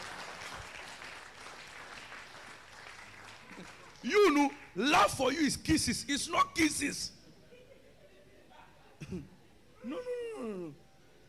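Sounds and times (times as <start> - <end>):
crowd clapping: 0.0 - 4.8
speech: 3.6 - 7.2, 9.1 - 10.8.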